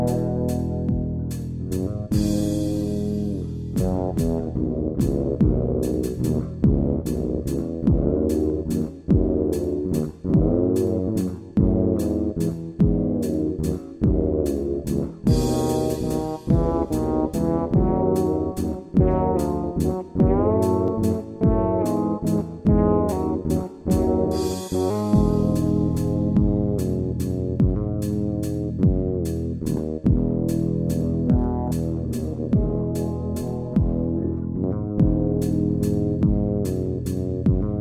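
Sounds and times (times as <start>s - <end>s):
FL bass: 0.0s - 37.7s.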